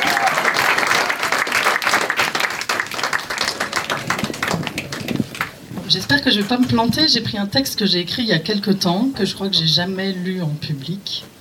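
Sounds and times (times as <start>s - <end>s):
audience applauding: 0.0s - 5.7s
speech: 5.9s - 11.3s.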